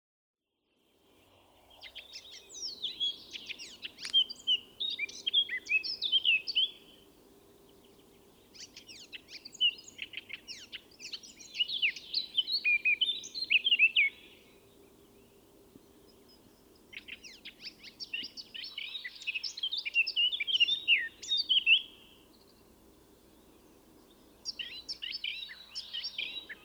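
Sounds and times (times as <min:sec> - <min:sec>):
Eurasian blackcap singing: 0:01.8 - 0:07.0, 0:08.4 - 0:14.4, 0:16.1 - 0:22.0, 0:24.4 - 0:26.6.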